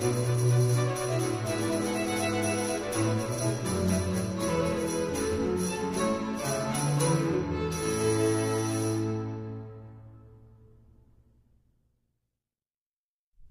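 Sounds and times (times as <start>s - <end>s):
cello solo: 0.0s - 9.8s.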